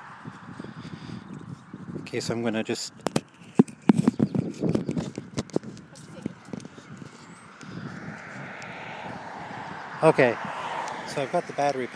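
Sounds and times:
road traffic engine rumble: 0:00.0 - 0:11.9
speech: 0:02.1 - 0:03.2, 0:10.0 - 0:10.5, 0:11.2 - 0:11.9.

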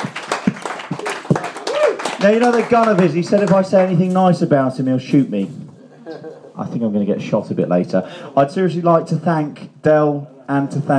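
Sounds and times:
audience applause: 0:00.0 - 0:04.2
speech: 0:02.2 - 0:10.9.

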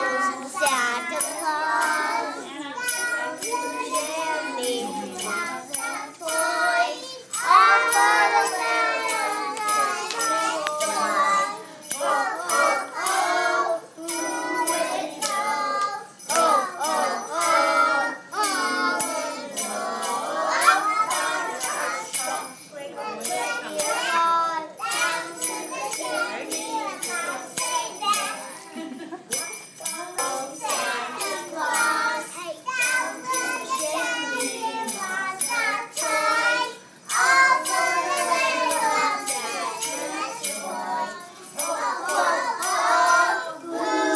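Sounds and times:
children singing Christmas songs: 0:00.0 - 0:28.8, 0:29.4 - 0:44.1
laughter: 0:28.6 - 0:29.4.

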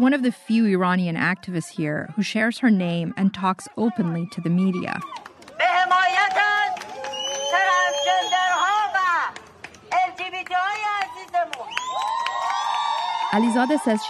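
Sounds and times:
speech: 0:00.0 - 0:05.3, 0:13.3 - 0:14.0
protest crowd cheering and shouting: 0:03.9 - 0:09.3, 0:10.2 - 0:14.0.

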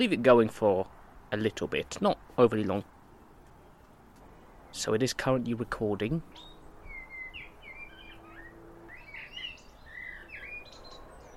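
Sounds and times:
speech: 0:00.0 - 0:02.9, 0:04.7 - 0:06.5
birds singing in a back garden: 0:02.6 - 0:11.3.

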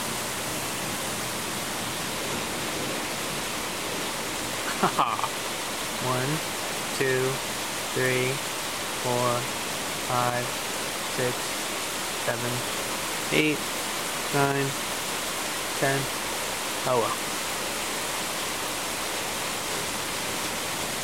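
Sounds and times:
heavy thunderstorm rain: 0:00.0 - 0:21.0
person chuckling and laughing: 0:04.6 - 0:05.4
speech: 0:04.8 - 0:05.4, 0:06.0 - 0:10.6, 0:11.2 - 0:11.6, 0:12.2 - 0:14.9, 0:15.8 - 0:16.2, 0:16.8 - 0:17.3.

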